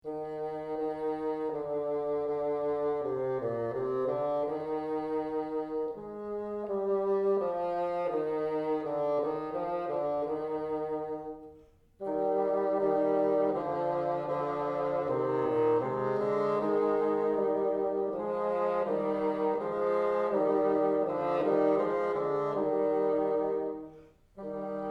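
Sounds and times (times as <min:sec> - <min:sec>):
bassoon: 0:00.0 - 0:24.8.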